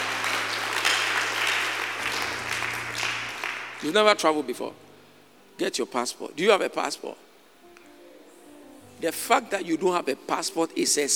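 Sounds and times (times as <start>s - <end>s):
crowd clapping: 0.0s - 4.2s
speech: 3.8s - 4.8s, 5.6s - 7.3s, 9.0s - 11.1s.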